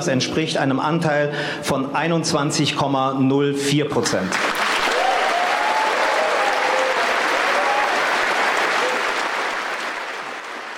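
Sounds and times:
speech: 0:00.0 - 0:04.6
applause at a party announcement: 0:04.2 - 0:10.7.

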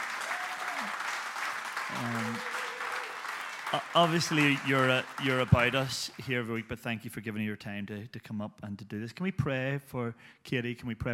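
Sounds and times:
person cheering: 0:00.0 - 0:01.0, 0:01.9 - 0:05.7
crowd round of applause: 0:00.0 - 0:06.6
speech: 0:01.9 - 0:02.5, 0:03.7 - 0:11.1.

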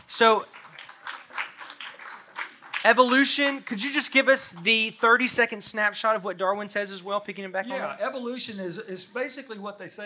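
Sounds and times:
audience applause: 0:00.0 - 0:04.7
speech: 0:00.2 - 0:00.6, 0:02.8 - 0:10.0.

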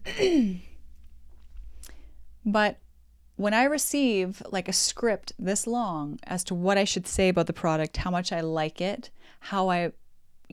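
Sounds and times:
throat clearing: 0:00.0 - 0:00.8
speech: 0:00.2 - 0:00.7, 0:02.4 - 0:02.8, 0:03.4 - 0:10.5
faint breath: 0:01.6 - 0:02.3, 0:09.2 - 0:09.4.

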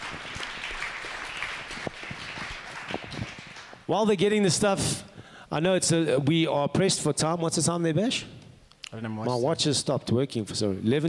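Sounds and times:
audience round of applause: 0:00.0 - 0:03.9
speech: 0:03.9 - 0:11.0.

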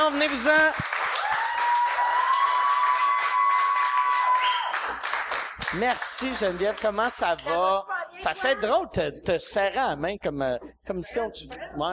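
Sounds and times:
speech: 0:00.0 - 0:01.0, 0:05.7 - 0:11.9
audience applause welcoming guests: 0:00.0 - 0:07.2.

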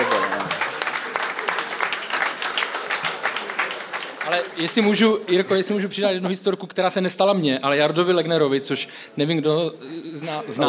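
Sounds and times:
audience applause: 0:00.0 - 0:05.9
speech: 0:04.3 - 0:10.6.

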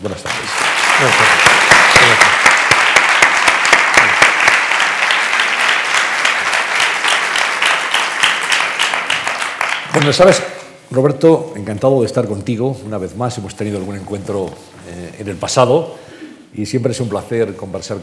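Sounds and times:
audience applause: 0:00.2 - 0:10.4
speech: 0:01.0 - 0:01.4, 0:10.0 - 0:18.0.

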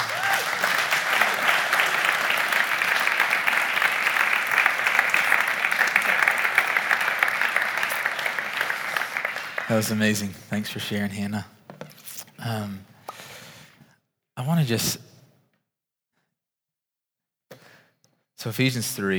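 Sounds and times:
crowd clapping: 0:00.0 - 0:10.4
speech: 0:09.8 - 0:11.5, 0:12.4 - 0:12.9, 0:14.4 - 0:15.1, 0:18.4 - 0:19.1.

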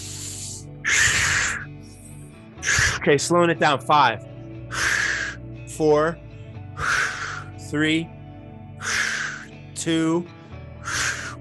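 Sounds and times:
deep forceful breathing during a breathwork exercise: 0:00.0 - 0:03.0, 0:04.6 - 0:05.6, 0:06.3 - 0:07.7, 0:08.8 - 0:09.6, 0:10.4 - 0:11.3
speech: 0:03.0 - 0:04.9, 0:05.8 - 0:06.2, 0:07.7 - 0:08.2, 0:09.8 - 0:10.4.

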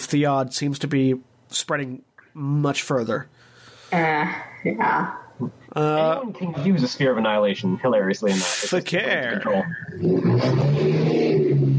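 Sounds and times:
speech: 0:00.1 - 0:11.6
loud engine roaring outside house: 0:10.0 - 0:11.7.

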